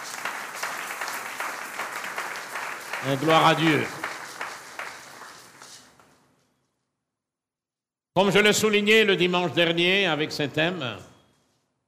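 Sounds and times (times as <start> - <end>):
church congregation applauding after a Gospel reading: 0.0 - 6.2
speech: 3.0 - 4.0, 8.2 - 11.1.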